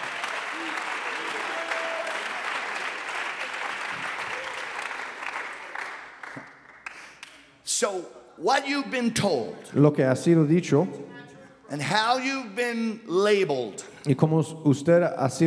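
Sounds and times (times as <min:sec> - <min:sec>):
audience clapping hands: 0:00.0 - 0:07.5
speech: 0:07.8 - 0:11.1, 0:11.7 - 0:15.4.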